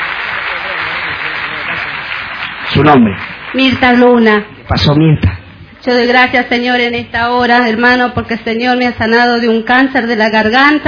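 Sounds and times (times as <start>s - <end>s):
audience applause: 0.0s - 4.4s
speech: 2.8s - 10.8s.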